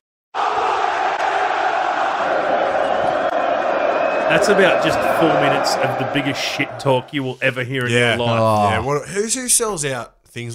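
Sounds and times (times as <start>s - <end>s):
arena crowd screaming a chant: 0.4s - 7.4s
speech: 4.3s - 10.5s.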